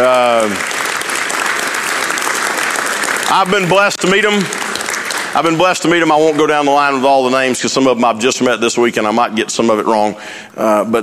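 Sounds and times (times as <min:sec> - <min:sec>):
audience applause welcoming a group of students: 0:00.0 - 0:07.3
speech: 0:03.3 - 0:04.6, 0:05.3 - 0:11.0.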